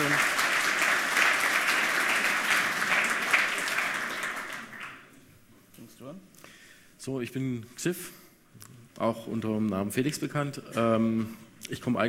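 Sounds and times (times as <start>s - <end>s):
audience applause for the speakers: 0.0s - 5.1s
speech: 7.1s - 8.2s, 9.0s - 12.0s.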